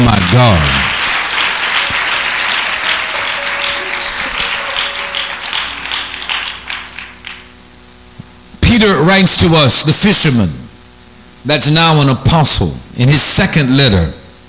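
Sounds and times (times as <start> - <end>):
audience clapping hands: 0.0 - 7.7
speech: 0.1 - 0.8, 8.9 - 10.6, 11.4 - 14.2.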